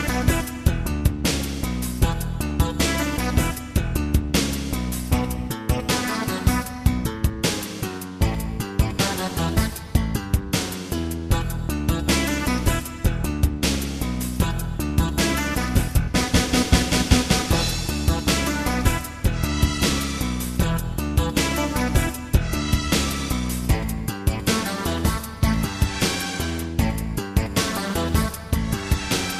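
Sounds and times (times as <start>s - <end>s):
concert waiting music: 0.0s - 29.3s.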